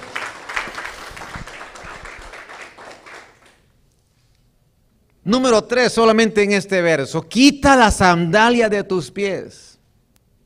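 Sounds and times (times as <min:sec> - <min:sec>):
audience applause: 0:00.0 - 0:03.7
speech: 0:05.3 - 0:09.7.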